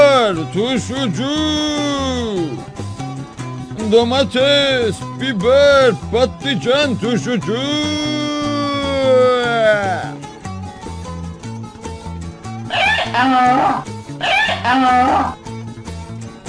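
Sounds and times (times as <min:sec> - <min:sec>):
donkey braying: 0:00.0 - 0:15.6
speech: 0:00.4 - 0:02.7, 0:03.8 - 0:10.1, 0:13.1 - 0:15.4.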